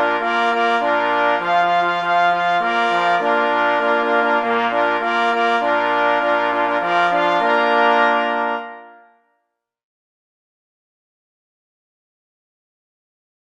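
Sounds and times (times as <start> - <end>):
hunting march on pless horns and parforce horns: 0.0 - 9.2.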